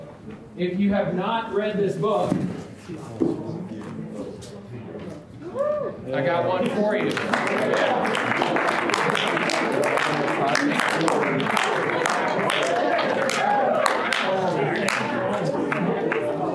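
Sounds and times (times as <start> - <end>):
murmur of voices: 0.0 - 16.5
speech: 0.6 - 3.4, 5.5 - 8.9
cheers: 5.4 - 6.1, 6.9 - 16.5
audience applause: 6.7 - 16.5.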